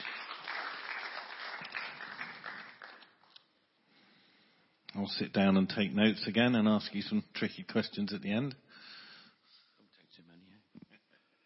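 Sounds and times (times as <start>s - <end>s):
audience applause: 0.0s - 3.3s
speech: 5.0s - 8.9s.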